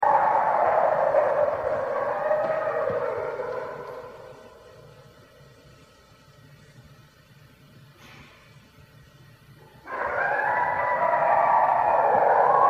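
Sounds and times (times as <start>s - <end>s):
red wolf howling: 0.0s - 4.9s, 9.8s - 12.6s.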